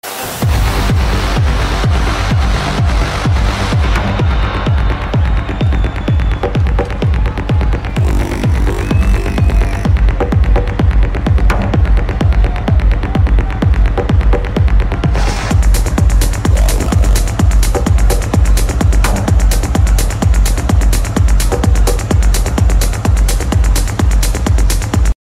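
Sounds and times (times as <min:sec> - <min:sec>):
trance music: 0:00.0 - 0:25.1.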